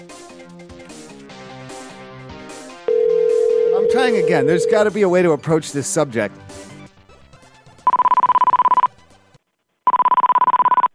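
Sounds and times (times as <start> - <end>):
rapidly pulsing, high electronic telephone ring: 2.9 - 4.8, 7.9 - 8.9, 9.9 - 10.9
speech: 3.9 - 6.5.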